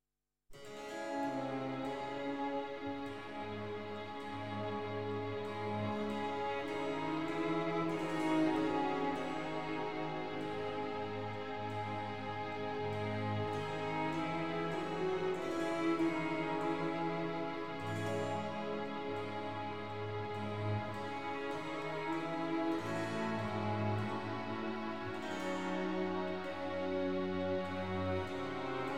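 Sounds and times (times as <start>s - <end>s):
violin concerto adagio: 1.4s - 28.9s.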